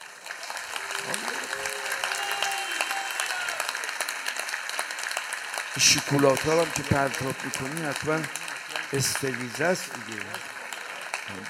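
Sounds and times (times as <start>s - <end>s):
audience clapping: 0.0s - 11.4s
speech: 5.8s - 10.5s, 11.3s - 11.4s.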